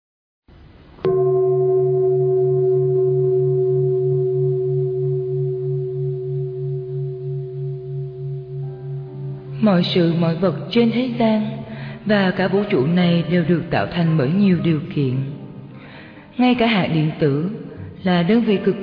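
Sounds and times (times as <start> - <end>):
meditation bell strikes: 1.0 - 11.9
speech: 9.6 - 15.4, 16.4 - 18.8.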